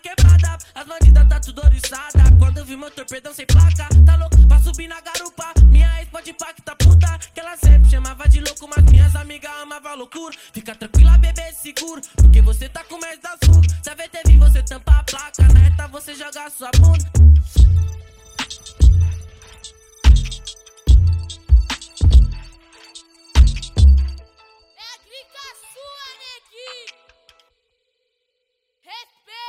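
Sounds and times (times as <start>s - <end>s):
deep bass: 0.2s - 2.7s, 3.5s - 4.9s, 5.6s - 6.1s, 6.8s - 9.3s, 11.0s - 11.5s, 12.2s - 12.8s, 13.4s - 15.9s, 16.8s - 18.0s, 18.8s - 19.2s, 20.1s - 22.4s, 23.4s - 24.1s.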